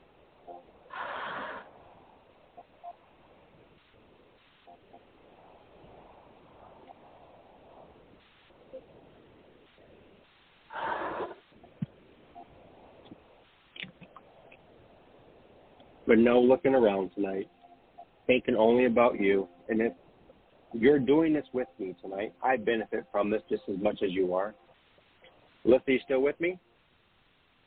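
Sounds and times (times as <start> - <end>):
faint steady hiss: 0.0 - 27.6
deep breaths during guided relaxation: 0.9 - 2.0
speech: 16.1 - 17.6, 18.3 - 20.0, 20.7 - 24.6, 25.6 - 26.6.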